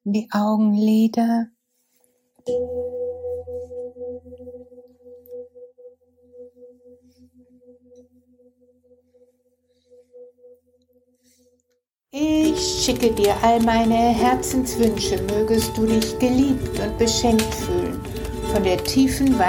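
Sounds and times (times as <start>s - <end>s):
speech: 0.0s - 1.6s, 2.4s - 3.0s, 11.4s - 19.4s
gong ringing: 2.5s - 8.0s.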